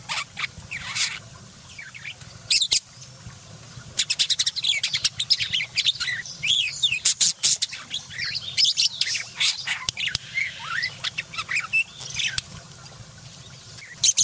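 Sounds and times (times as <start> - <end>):
budgerigar warbling chatter: 0.0 - 1.2, 4.0 - 12.5.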